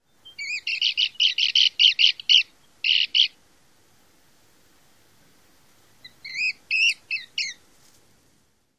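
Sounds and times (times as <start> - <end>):
calls: 0.3 - 3.4, 6.0 - 7.6.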